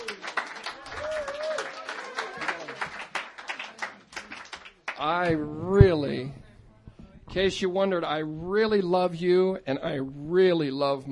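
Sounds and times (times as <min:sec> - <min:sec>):
voices and whoops: 0:00.0 - 0:02.8
audience clapping: 0:00.0 - 0:05.4
speech: 0:05.0 - 0:06.5, 0:07.3 - 0:11.0.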